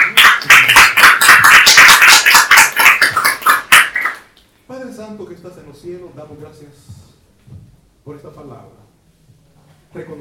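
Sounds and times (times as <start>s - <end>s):
audience applauding: 0.0s - 4.3s
speech: 5.7s - 8.9s, 9.9s - 10.2s.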